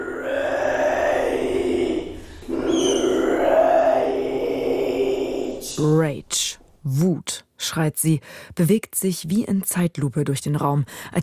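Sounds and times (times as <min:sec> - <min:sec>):
eerie growling throat sounds from performer: 0:00.0 - 0:05.9
speech: 0:05.8 - 0:11.2.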